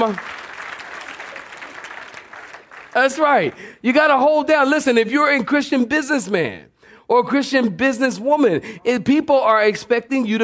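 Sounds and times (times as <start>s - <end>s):
speech: 0.0s - 0.4s, 2.9s - 10.4s
audience clapping hands: 0.0s - 3.8s.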